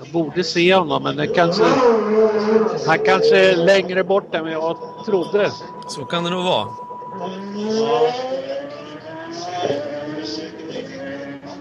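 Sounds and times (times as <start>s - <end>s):
speech: 0.1s - 8.5s
race car engine accelerating away from the pit after refuelling: 1.1s - 4.6s, 7.2s - 11.5s.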